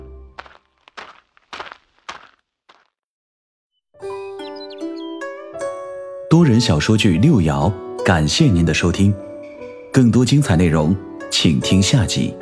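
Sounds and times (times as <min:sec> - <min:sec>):
footsteps approaching from outside: 0:00.3 - 0:03.0
speech: 0:06.4 - 0:09.3, 0:10.0 - 0:12.4.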